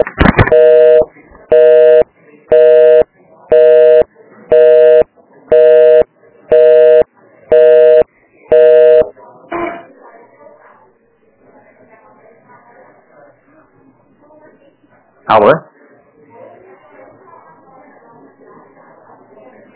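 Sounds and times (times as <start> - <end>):
telephone call transfer electronic beeps: 0.0 - 9.1.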